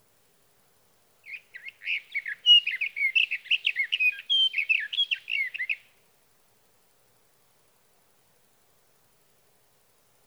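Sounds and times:
Sage thrasher song: 0:01.2 - 0:06.0.

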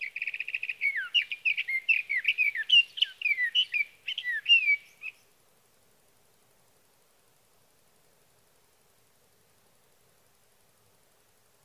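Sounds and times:
sage thrasher singing: 0:00.0 - 0:05.3.

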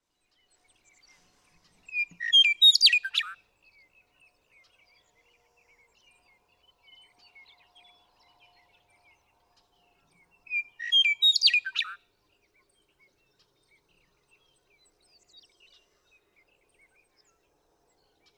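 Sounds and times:
western meadowlark singing: 0:01.9 - 0:03.3, 0:10.4 - 0:12.0.

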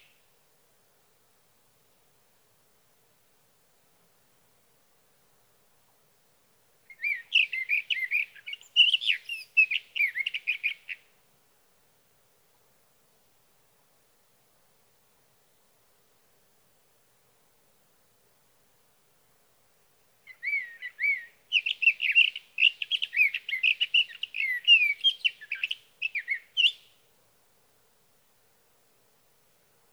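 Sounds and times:
Sage Thrasher singing through the night: 0:06.9 - 0:11.0, 0:20.3 - 0:26.9.

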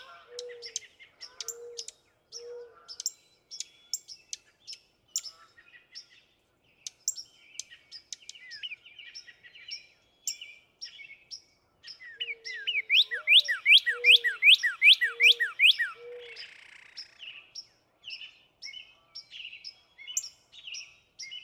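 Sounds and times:
other birds soft low whistles and thin high chips: 0:00.0 - 0:21.4
northern cardinal singing upslurred whistles: 0:12.7 - 0:16.2.

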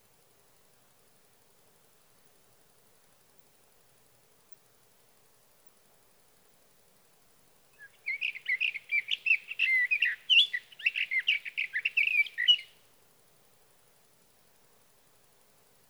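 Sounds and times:
sage thrasher warbling song: 0:07.8 - 0:12.7.

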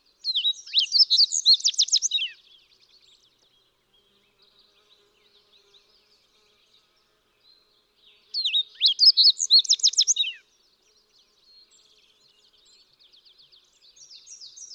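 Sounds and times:
fox sparrow whistled song: 0:00.1 - 0:03.3, 0:08.4 - 0:10.5.

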